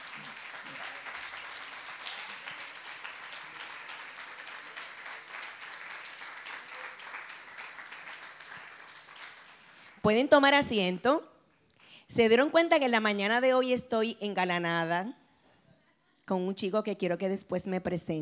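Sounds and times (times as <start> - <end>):
audience applause: 0.0 - 10.0
speech: 10.0 - 11.3, 12.1 - 15.2, 16.3 - 18.2.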